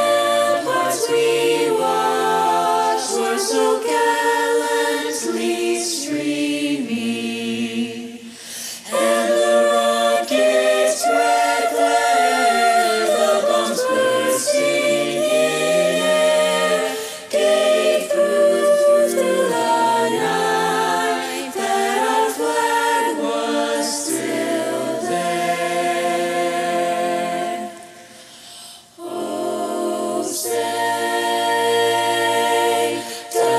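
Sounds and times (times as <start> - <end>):
soprano singing a learning track part: 0.0 - 8.2, 8.9 - 27.8, 29.0 - 33.5.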